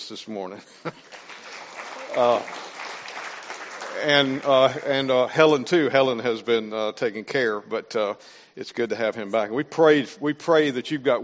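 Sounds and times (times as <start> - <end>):
speech: 0.1 - 1.3, 2.1 - 2.6, 3.9 - 11.2
audience hand clapping: 0.9 - 5.6.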